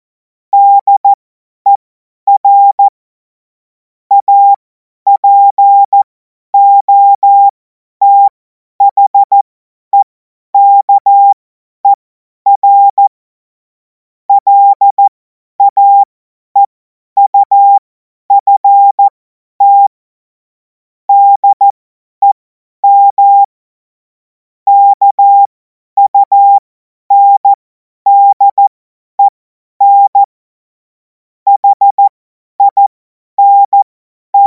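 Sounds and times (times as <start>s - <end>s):
CW Morse code beeps: 0.6s - 2.9s, 4.1s - 4.6s, 5.2s - 9.4s, 10.0s - 13.1s, 14.3s - 17.8s, 18.4s - 19.9s, 21.1s - 23.5s, 24.7s - 30.3s, 31.5s - 34.4s.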